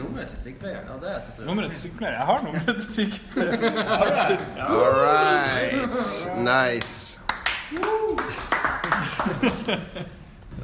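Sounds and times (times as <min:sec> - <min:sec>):
speech: 0:00.2 - 0:10.2
laughter: 0:02.4 - 0:06.2, 0:08.3 - 0:10.4
weak forced clapping: 0:06.8 - 0:09.8.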